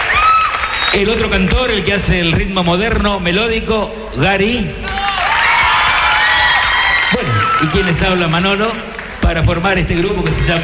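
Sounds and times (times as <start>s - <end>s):
audience cheering and whooping on a television show: 0.0s - 1.5s, 4.8s - 8.5s
audience clapping on a television show: 0.0s - 1.8s, 4.8s - 7.9s
speech: 0.9s - 4.9s, 7.6s - 10.6s.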